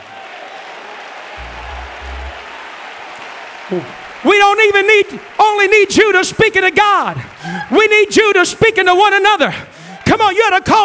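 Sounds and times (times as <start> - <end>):
audience clapping hands: 0.0 - 10.8
speech: 3.7 - 10.8.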